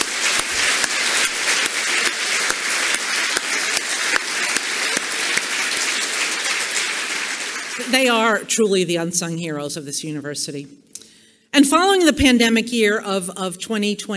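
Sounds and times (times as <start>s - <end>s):
audience applause: 0.0s - 8.3s
speech: 8.0s - 10.9s, 11.6s - 14.1s.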